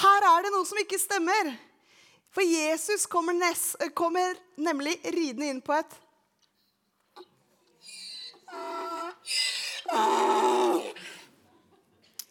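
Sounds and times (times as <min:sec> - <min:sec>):
speech: 0:00.7 - 0:01.7, 0:02.3 - 0:06.0, 0:08.5 - 0:11.1
donkey braying: 0:07.2 - 0:11.0
laughter: 0:11.0 - 0:12.2.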